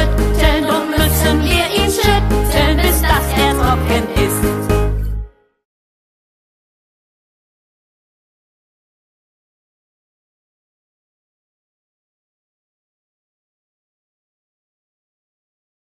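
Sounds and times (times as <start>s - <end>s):
children's action sing-along song about hand washing: 0.0s - 4.9s.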